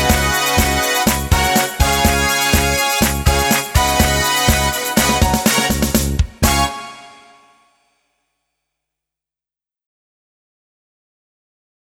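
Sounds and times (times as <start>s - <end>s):
karaoke backing track: 0.0s - 7.2s.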